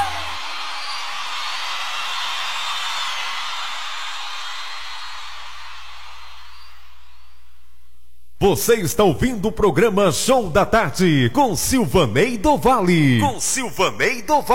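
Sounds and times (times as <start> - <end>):
crowd applause and cheering: 0.0 - 7.4
speech: 8.4 - 14.5.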